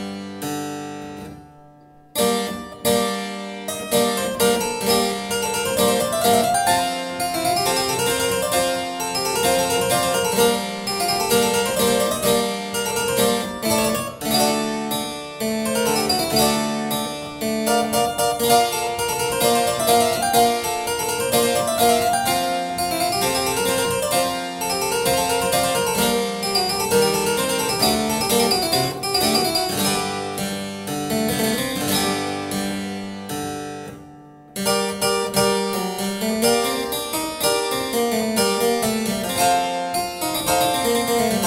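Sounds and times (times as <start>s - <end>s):
harpsichord piece: 0.0s - 41.4s.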